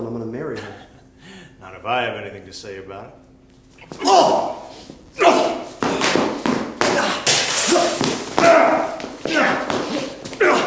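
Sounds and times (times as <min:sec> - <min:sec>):
speech: 0:01.8 - 0:03.2, 0:03.9 - 0:04.5
vocal grunts and exclamations: 0:03.9 - 0:05.7, 0:07.0 - 0:10.6
punch impacts from a staged fight: 0:05.2 - 0:10.6.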